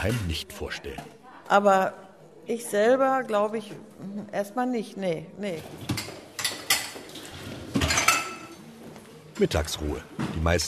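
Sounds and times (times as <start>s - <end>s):
speech: 0.0s - 6.1s, 9.4s - 10.6s
glasses put into a dishwasher: 7.7s - 8.5s.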